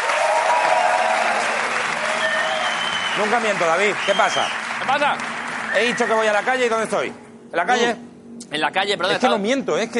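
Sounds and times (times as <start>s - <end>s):
audience applause: 0.0s - 6.9s
speech: 3.2s - 9.9s.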